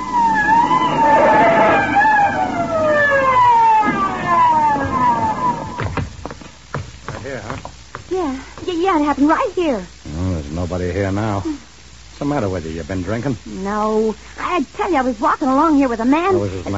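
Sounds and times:
police car siren wailing: 0.0s - 6.2s
speech: 9.2s - 10.0s, 10.6s - 11.6s, 12.2s - 16.7s.

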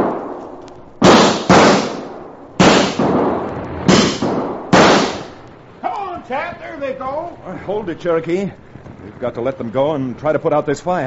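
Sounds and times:
gunshots fired to scare coyotes: 0.0s - 0.4s, 1.0s - 6.5s
speech: 6.3s - 11.0s.

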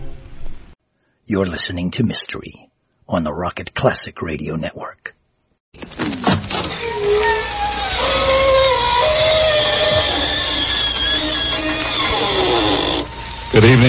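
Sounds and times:
speech: 1.3s - 5.2s, 13.5s - 13.8s
door creaking open with squealing hinges: 5.8s - 13.8s.

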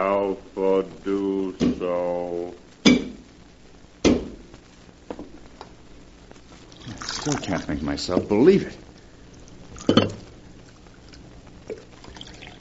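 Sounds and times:
speech: 0.0s - 2.0s, 7.2s - 8.8s
coffee pouring into a cup: 6.7s - 7.7s, 9.3s - 10.2s, 11.1s - 12.5s.

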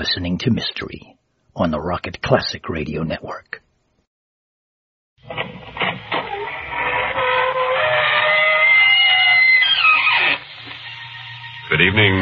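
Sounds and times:
speech: 0.0s - 3.6s, 11.7s - 12.1s
squeaking door opening: 5.3s - 11.7s.

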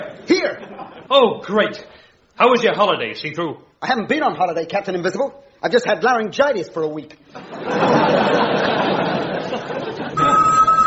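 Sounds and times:
speech: 0.2s - 8.6s
laughter: 7.3s - 10.8s
crowd chatter: 10.1s - 10.8s
telephone ringing with a bright electronic tone: 10.2s - 10.8s.

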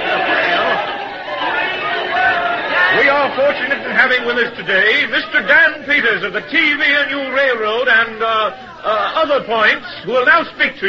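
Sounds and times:
dense crowd chattering: 0.0s - 10.8s
speech: 3.4s - 10.8s.

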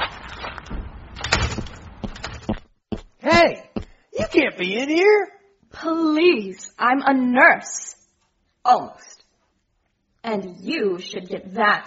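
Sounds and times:
door opened with a scrape and rattle: 0.0s - 2.6s
speech: 3.4s - 3.6s, 4.3s - 8.0s, 8.6s - 9.2s, 10.2s - 11.8s.

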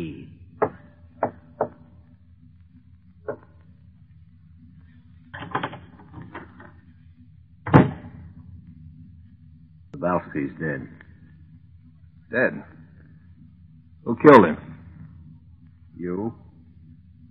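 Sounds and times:
steady low hum: 0.0s - 17.3s
heavy door thump: 7.6s - 8.4s
speech: 10.3s - 11.0s, 12.3s - 12.8s, 14.1s - 14.6s.

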